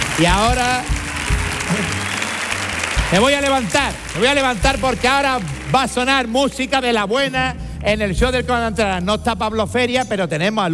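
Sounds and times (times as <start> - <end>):
audience ovation for two comedians at a live comedy show: 0.0 - 6.4
speech: 0.2 - 1.1, 1.7 - 2.1, 3.1 - 10.7.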